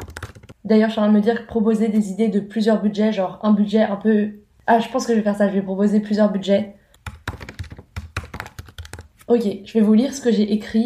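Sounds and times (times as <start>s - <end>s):
typing on a computer keyboard: 0.0s - 0.6s, 7.0s - 9.1s
speech: 0.7s - 6.8s, 9.3s - 10.8s.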